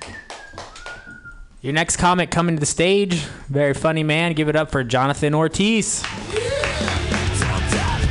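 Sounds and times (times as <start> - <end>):
speech: 1.6 - 6.2
audience applause: 6.0 - 8.0.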